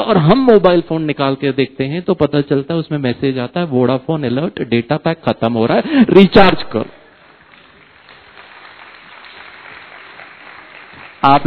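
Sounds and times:
speech: 0:00.0 - 0:07.0, 0:11.2 - 0:11.4
audience applause: 0:07.1 - 0:11.4.

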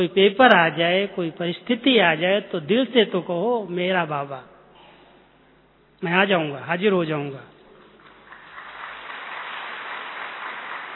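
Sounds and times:
speech: 0:00.0 - 0:04.5, 0:06.0 - 0:07.5
audience clapping: 0:07.7 - 0:10.9.

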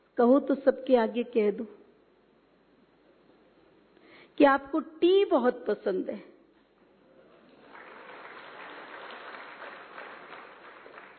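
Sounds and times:
speech: 0:00.2 - 0:01.8, 0:04.4 - 0:06.3
audience clapping: 0:07.4 - 0:11.1.

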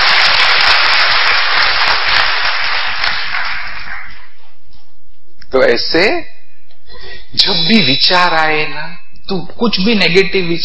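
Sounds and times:
audience clapping: 0:00.0 - 0:04.6
speech: 0:05.5 - 0:06.3, 0:07.3 - 0:10.6.

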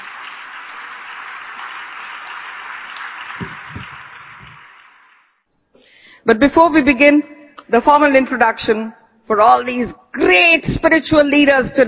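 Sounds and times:
audience applause: 0:00.0 - 0:05.4
speech: 0:06.3 - 0:11.8.

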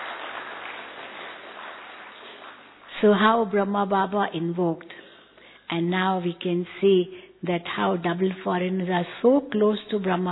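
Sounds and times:
audience at a spiritual gathering clapping: 0:00.0 - 0:02.9
speech: 0:03.0 - 0:04.9, 0:05.7 - 0:10.3.

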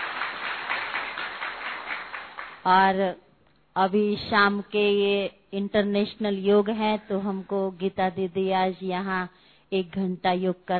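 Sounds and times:
audience clapping at a gathering at a centre: 0:00.0 - 0:02.7
speech: 0:02.6 - 0:03.2, 0:03.8 - 0:10.7.

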